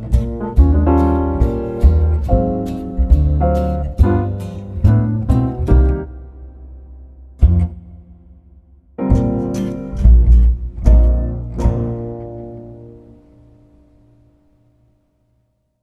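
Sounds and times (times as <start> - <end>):
swing jazz drum set trading fours: 0.0 - 6.1, 7.4 - 8.3, 9.0 - 13.3.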